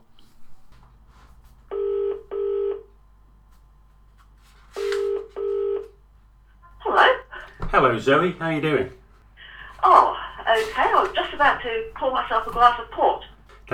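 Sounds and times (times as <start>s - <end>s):
quiet hum: 0.0s - 13.7s
telephone ringing tone heard down the line: 1.7s - 2.9s, 4.8s - 6.0s, 9.7s - 13.4s
speech: 7.8s - 9.0s, 11.4s - 13.7s.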